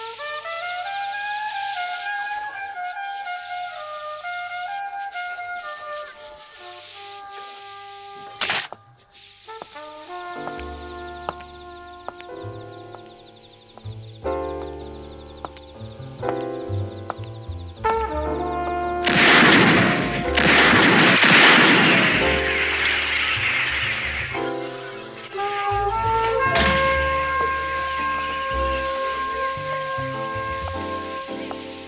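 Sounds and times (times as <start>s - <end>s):
birthday trumpet: 0.0s - 13.0s, 17.8s - 31.8s.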